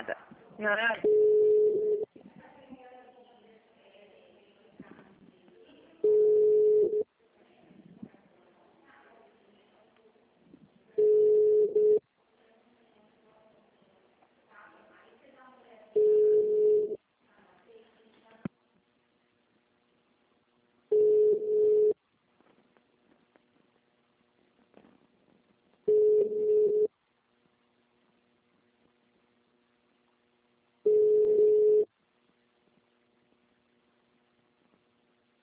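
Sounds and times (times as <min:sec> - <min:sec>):
telephone ringback tones on a transferred unanswered call: 0:01.0 - 0:02.0, 0:06.0 - 0:07.0, 0:11.0 - 0:12.0, 0:16.0 - 0:17.0, 0:20.9 - 0:22.0, 0:25.9 - 0:26.9, 0:30.9 - 0:31.9.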